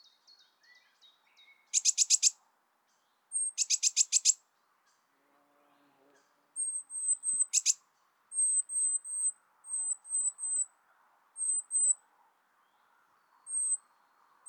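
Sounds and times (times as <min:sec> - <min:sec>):
Eurasian blue tit rapid buzzy scolding calls: 0:01.8 - 0:02.3, 0:03.4 - 0:04.4, 0:06.6 - 0:07.8, 0:08.4 - 0:10.6, 0:11.4 - 0:12.0, 0:13.5 - 0:13.8.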